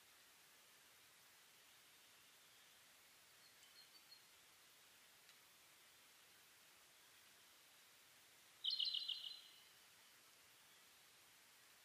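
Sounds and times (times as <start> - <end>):
quiet background hiss: 0.0 - 11.8
bird song trill: 8.6 - 9.6.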